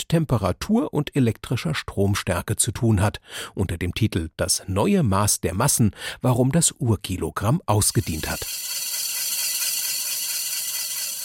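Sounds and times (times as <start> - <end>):
speech: 0.0 - 8.7
diamond core drill grinding through crystal: 7.9 - 11.2.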